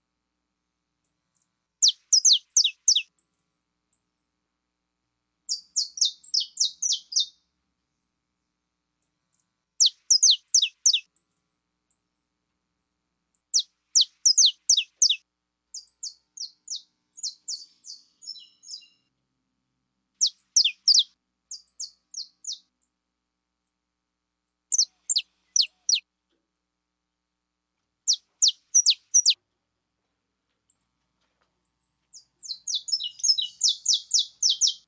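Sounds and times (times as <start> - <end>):
Belgian canary singing high descending chirps: 1.3 - 3.2, 5.5 - 7.4, 9.3 - 11.3, 13.4 - 19.1, 20.2 - 22.7, 24.7 - 26.0, 28.1 - 29.4, 31.7 - 34.8.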